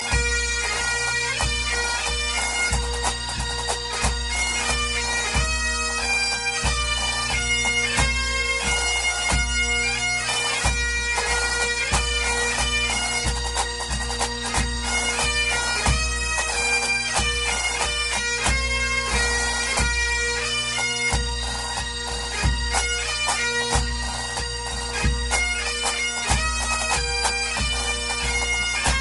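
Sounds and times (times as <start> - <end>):
national anthem music: 0.0 - 29.0.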